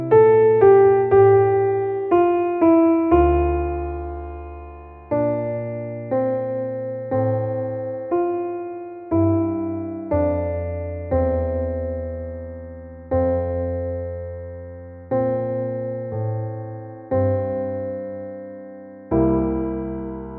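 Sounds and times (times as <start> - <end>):
piano accompaniment: 0.0 - 20.3.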